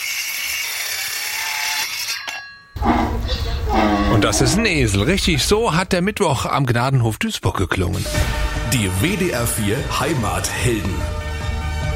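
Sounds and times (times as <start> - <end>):
sawing: 0.0 - 4.7
speech: 4.2 - 11.2.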